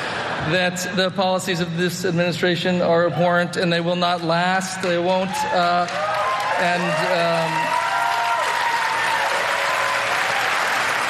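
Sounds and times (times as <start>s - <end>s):
speech: 0.4s - 7.8s
whoops and voices: 5.2s - 10.4s
steady audience applause: 5.6s - 11.0s.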